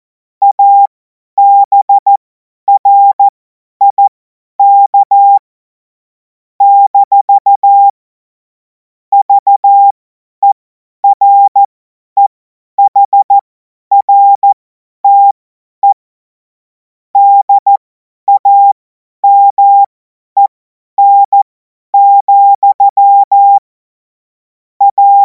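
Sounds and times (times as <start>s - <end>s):
CW Morse code beeps: 0.4s - 5.4s, 6.6s - 7.9s, 9.1s - 16.0s, 17.2s - 23.6s, 24.8s - 25.2s.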